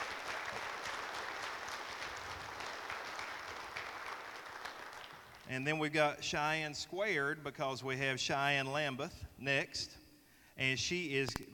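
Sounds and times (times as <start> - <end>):
audience applause: 0.0 - 5.5
speech: 5.5 - 10.0, 10.6 - 11.5.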